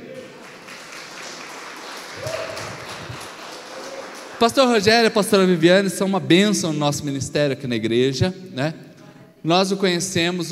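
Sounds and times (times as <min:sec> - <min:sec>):
audience applause: 0:00.0 - 0:04.9
speech: 0:04.4 - 0:08.8, 0:09.4 - 0:10.5.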